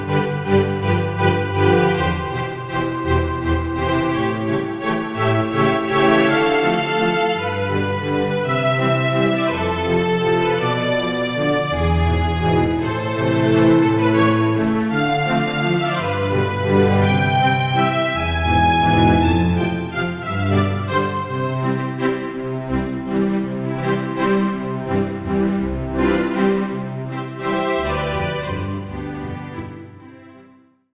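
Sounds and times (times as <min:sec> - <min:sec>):
string section from Roland SC-880 factory patches: 0:00.0 - 0:30.6.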